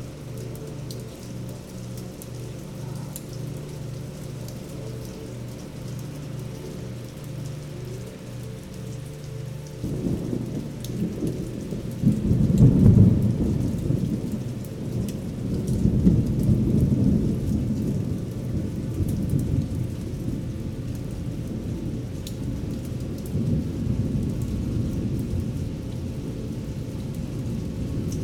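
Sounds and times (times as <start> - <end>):
thunderstorm: 9.8 - 21.7, 22.4 - 28.2.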